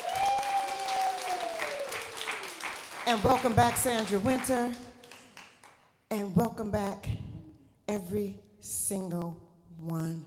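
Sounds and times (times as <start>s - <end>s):
audience applause: 0.0s - 5.5s
speech: 3.1s - 4.9s, 6.1s - 7.2s, 7.9s - 10.2s.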